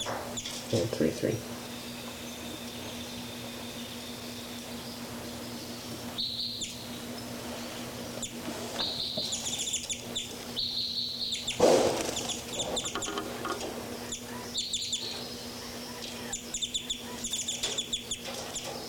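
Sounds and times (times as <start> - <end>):
birds chirping and calling: 0.0 - 18.8
steady low hum: 0.0 - 18.8
speech: 0.7 - 1.6
louder clucking call: 11.4 - 18.2.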